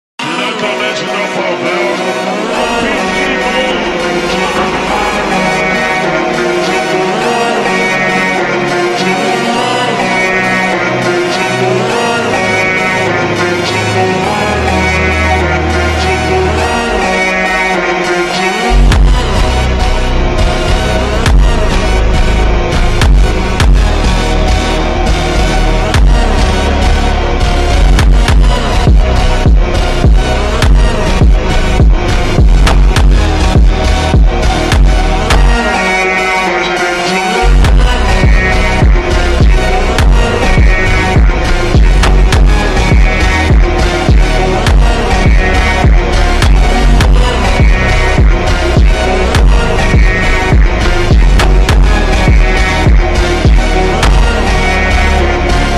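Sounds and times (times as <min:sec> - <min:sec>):
slowed reverb Brazilian phonk funk music: 0:00.2 - 0:55.7.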